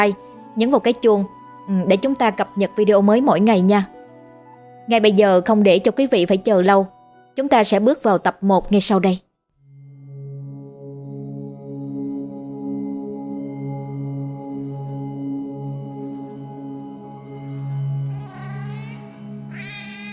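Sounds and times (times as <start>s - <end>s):
speech: 0.0s - 4.0s, 4.9s - 9.2s
cat yowling plaintively at night: 18.1s - 20.1s.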